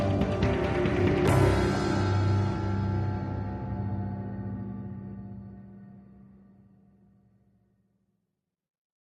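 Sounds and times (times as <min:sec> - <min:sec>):
tense music loop: 0:00.0 - 0:06.5.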